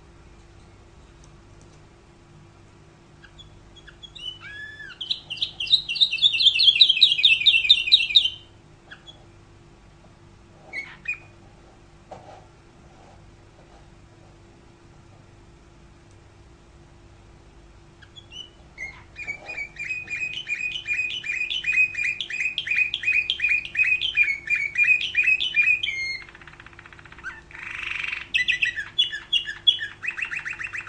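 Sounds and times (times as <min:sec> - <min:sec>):
faint hum: 0:00.0 - 0:30.8
Canary song: 0:02.3 - 0:09.6, 0:10.6 - 0:11.4, 0:17.7 - 0:30.8.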